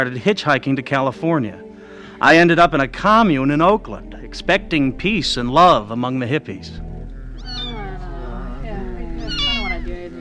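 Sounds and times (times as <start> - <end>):
speech: 0.0 - 1.6, 2.2 - 6.9
low steady hum: 1.8 - 10.1
kitten meowing in distress: 7.4 - 8.0, 9.2 - 9.9.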